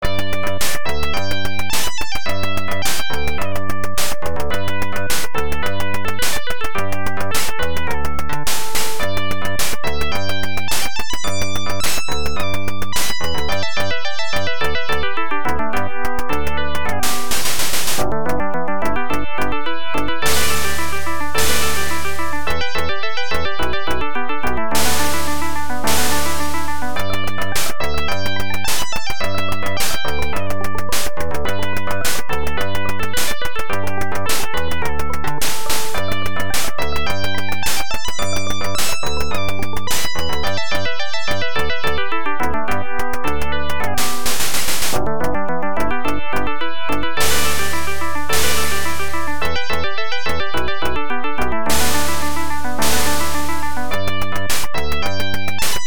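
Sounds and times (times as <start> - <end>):
round background music: 0.0 - 55.8.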